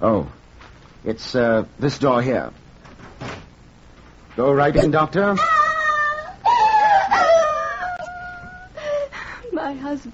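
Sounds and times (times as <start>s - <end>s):
speech: 1.0s - 2.6s, 4.4s - 5.5s, 9.7s - 10.1s
woman screaming: 5.4s - 8.6s.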